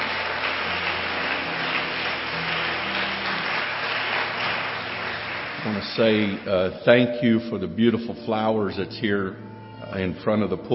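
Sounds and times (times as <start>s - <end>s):
crowd clapping: 0.0s - 6.8s
speech: 5.6s - 10.7s.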